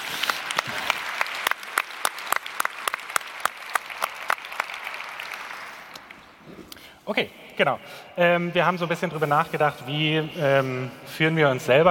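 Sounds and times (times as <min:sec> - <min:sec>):
audience applause: 0:00.0 - 0:06.3
speech: 0:07.1 - 0:11.8.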